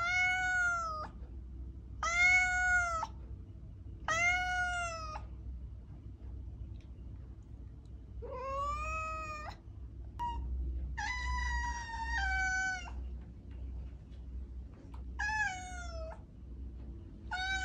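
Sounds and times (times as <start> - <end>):
cat noises: 0.0 - 1.3, 1.9 - 3.3, 4.0 - 5.4, 8.1 - 14.0, 14.8 - 16.3, 17.2 - 17.6.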